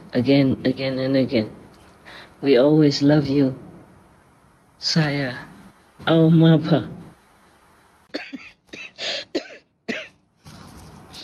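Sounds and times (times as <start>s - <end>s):
speech: 0.1s - 3.6s, 4.8s - 7.0s
person coughing: 8.1s - 10.2s.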